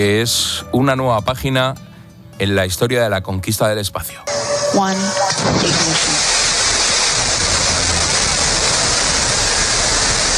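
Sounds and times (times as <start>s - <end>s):
speech: 0.0s - 6.2s
Blue Origin New Shepard rocket lifting off in the desert: 5.1s - 10.3s.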